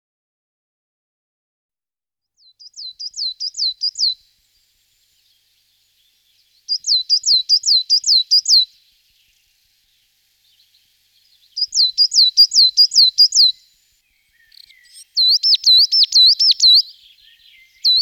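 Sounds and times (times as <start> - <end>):
coal tit singing: 2.4 - 4.2, 5.3 - 13.6, 14.4 - 18.0.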